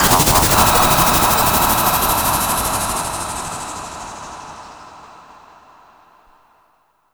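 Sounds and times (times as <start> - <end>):
space sound effects: 0.0 - 5.4.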